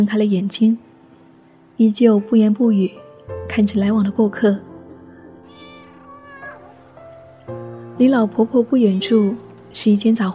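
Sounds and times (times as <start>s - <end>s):
speech: 0.0s - 0.9s, 1.8s - 4.7s, 8.0s - 10.3s
cat meowing: 5.3s - 7.3s.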